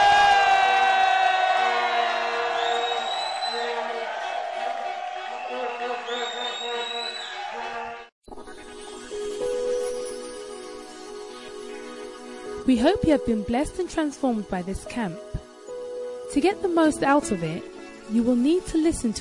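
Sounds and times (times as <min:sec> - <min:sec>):
crowd shouting and cheering in praise to the Lord at a camp gathering: 0:00.0 - 0:08.1
speech: 0:12.7 - 0:15.3, 0:16.4 - 0:19.1.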